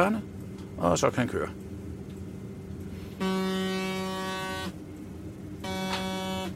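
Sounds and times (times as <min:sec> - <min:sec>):
speech: 0:00.0 - 0:01.6
buzzer tones in a train driver's cab: 0:03.2 - 0:04.8, 0:05.6 - 0:06.5.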